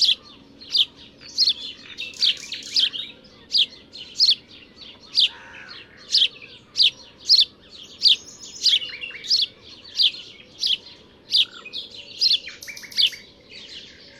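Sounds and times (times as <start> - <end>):
house sparrow Passer domesticus chirping: 0.0 - 14.1.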